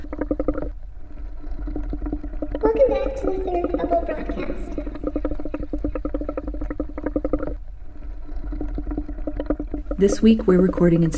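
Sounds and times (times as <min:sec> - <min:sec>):
bubbles blown through a straw into a cup: 0:00.0 - 0:11.0
speech: 0:03.0 - 0:04.8, 0:10.0 - 0:11.1.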